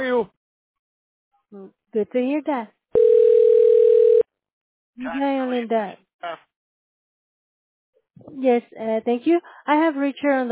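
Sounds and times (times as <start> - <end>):
speech: 1.5 - 3.2, 5.0 - 6.5, 8.2 - 10.5
telephone dial tone: 3.0 - 4.2.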